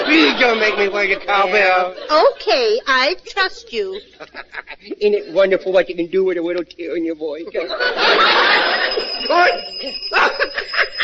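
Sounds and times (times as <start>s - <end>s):
laughter: 0.0s - 2.5s, 3.8s - 5.6s, 7.4s - 11.0s
speech: 0.1s - 11.0s
doorbell ringing continuously: 7.8s - 11.0s.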